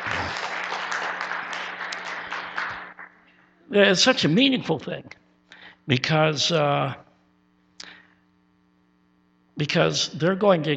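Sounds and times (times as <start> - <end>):
audience applauding: 0.0 - 3.2
speech: 3.7 - 5.2, 5.9 - 7.0, 9.6 - 10.7.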